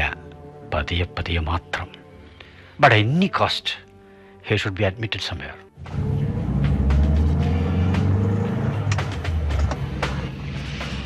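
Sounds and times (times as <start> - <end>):
speech: 0.8 - 2.0, 2.8 - 3.8, 4.4 - 6.0
car driving with engine and road rumble: 5.8 - 11.0.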